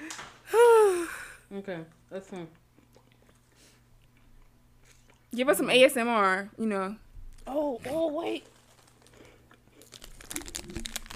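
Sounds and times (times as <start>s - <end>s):
speech: 1.6s - 2.7s, 5.3s - 8.5s
crunchy smacking chewing close to a microphone: 2.7s - 5.3s, 8.4s - 11.1s
Cheez-It wrapper crinkling: 7.9s - 11.1s.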